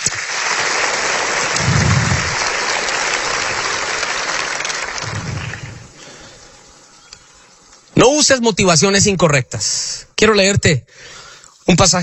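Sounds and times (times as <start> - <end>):
loud audience applause: 0.0 - 6.4
speech: 8.0 - 12.0.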